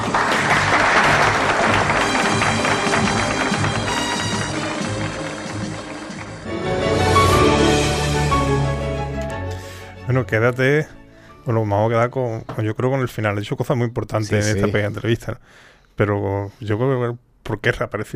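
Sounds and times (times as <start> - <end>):
audience applause: 0.0 - 8.8
speech: 10.2 - 18.1.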